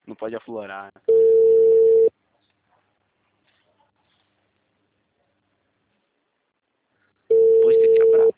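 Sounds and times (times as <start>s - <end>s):
speech: 0.2s - 1.4s
telephone ringing: 1.1s - 2.1s, 7.3s - 8.3s.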